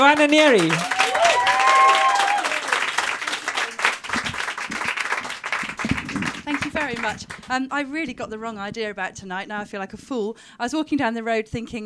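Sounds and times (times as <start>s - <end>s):
speech: 0.0s - 0.9s, 6.9s - 11.8s
audience applause: 0.0s - 7.5s.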